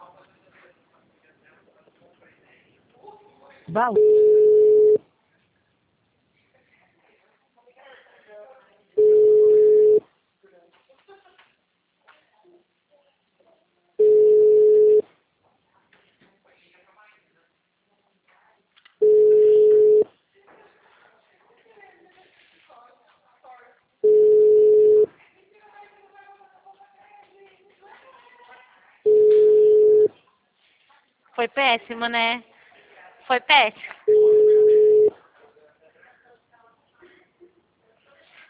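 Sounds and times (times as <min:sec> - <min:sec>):
speech: 0:03.7 - 0:04.2, 0:31.4 - 0:32.5, 0:33.3 - 0:34.0
telephone tone after a dropped call to an HR line: 0:03.9 - 0:05.0, 0:09.0 - 0:10.0, 0:14.0 - 0:15.0, 0:19.0 - 0:20.0, 0:24.0 - 0:25.1, 0:29.1 - 0:30.1, 0:34.1 - 0:35.1.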